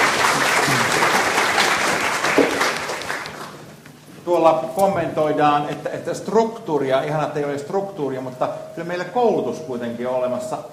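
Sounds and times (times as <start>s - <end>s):
audience applause for a panel of speakers after a Finnish discussion session: 0.0s - 3.7s
speech: 4.3s - 10.7s.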